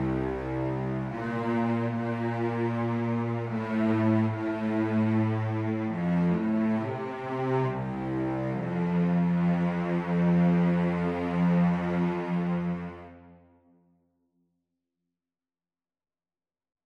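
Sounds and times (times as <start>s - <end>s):
cello playing: 0.0s - 13.4s.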